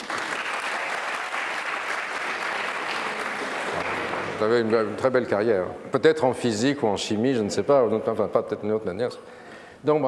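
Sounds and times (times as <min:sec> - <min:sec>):
audience applause: 0:00.0 - 0:04.8
speech: 0:04.4 - 0:10.0.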